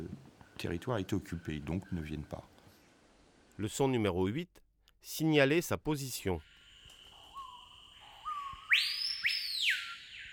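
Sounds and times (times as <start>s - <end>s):
speech: 0.6s - 2.5s, 3.6s - 6.5s
screaming piha calling: 6.9s - 10.3s.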